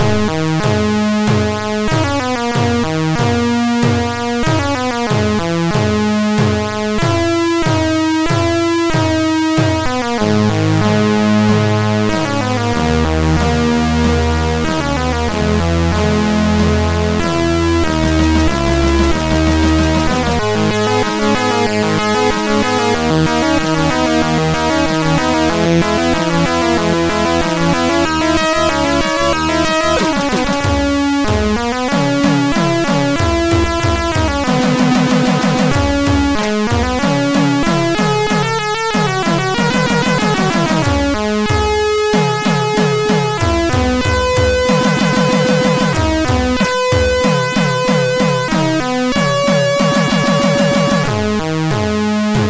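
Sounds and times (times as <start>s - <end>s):
SID MOS6581R2 chip bass: 0.0s - 52.4s.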